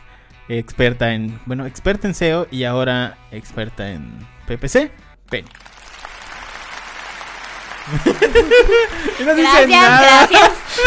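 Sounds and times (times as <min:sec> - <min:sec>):
speech: 0:00.5 - 0:05.8, 0:07.9 - 0:10.8
steady applause from a group: 0:05.3 - 0:10.8
laughter: 0:07.7 - 0:10.8.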